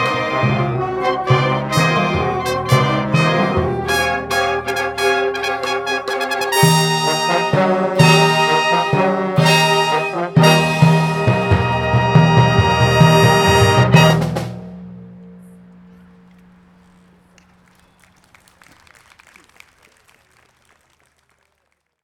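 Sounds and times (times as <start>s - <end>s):
fanfare: 0.0s - 14.8s.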